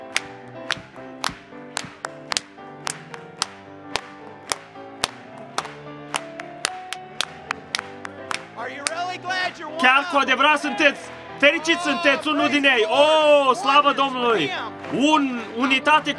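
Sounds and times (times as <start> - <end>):
audience clapping: 0.0 - 9.1
speech: 9.5 - 16.1.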